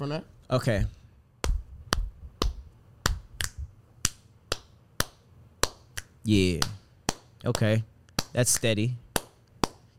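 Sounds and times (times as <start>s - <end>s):
speech: 0.0s - 1.0s, 6.3s - 6.8s, 7.4s - 9.0s
finger snapping beat: 1.4s - 7.2s.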